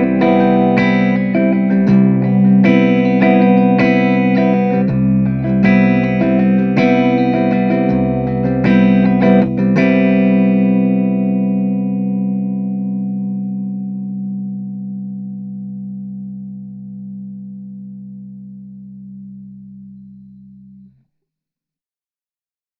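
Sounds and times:
riffy strummed guitar in C: 0.0s - 15.3s.

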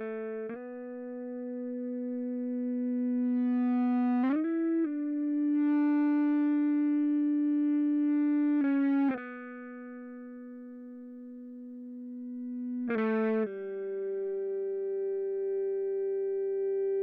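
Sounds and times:
ebow guitar chorus: 0.0s - 17.0s.

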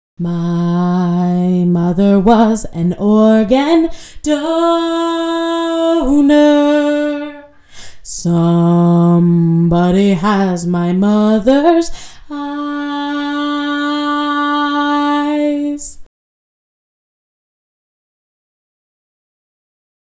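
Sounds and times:
vocal stems: 0.2s - 16.1s.

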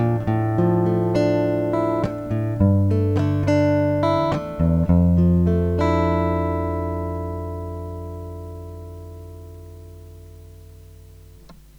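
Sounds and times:
guitar arpeggios in F: 0.0s - 11.7s.

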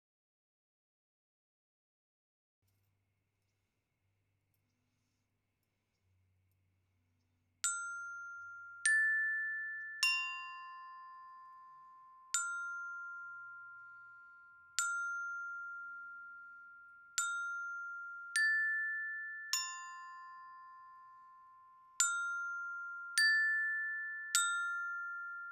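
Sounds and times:
glockenspiel: 7.6s - 25.5s.

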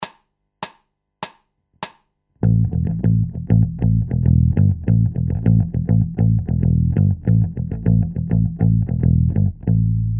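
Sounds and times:
bass loops: 2.4s - 10.1s.

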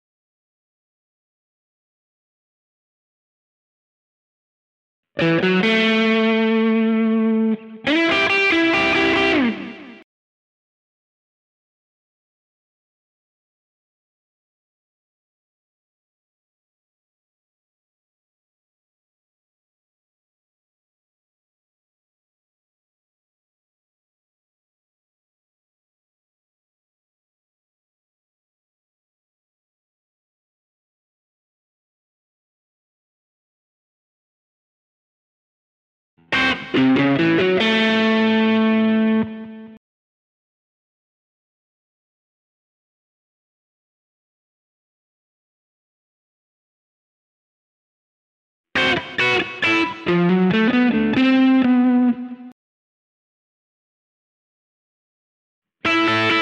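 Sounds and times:
country rock music in A: 5.2s - 10.0s, 36.3s - 39.5s, 48.8s - 52.2s, 55.9s - 56.4s.

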